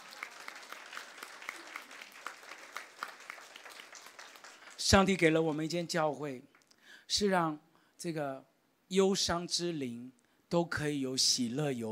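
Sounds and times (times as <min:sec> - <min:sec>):
audience applauding loudly: 0:00.0 - 0:05.8
speech: 0:04.9 - 0:06.5, 0:07.1 - 0:11.9.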